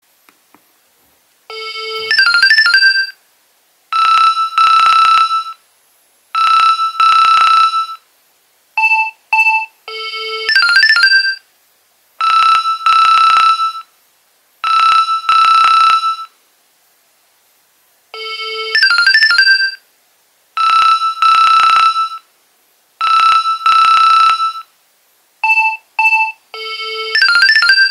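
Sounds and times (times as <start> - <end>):
Nokia 2300 ringtones: 1.5 - 3.2, 4.0 - 5.6, 6.4 - 8.0, 8.8 - 11.4, 12.2 - 13.9, 14.6 - 16.3, 18.2 - 19.8, 20.6 - 22.2, 23.0 - 24.7, 25.4 - 27.8.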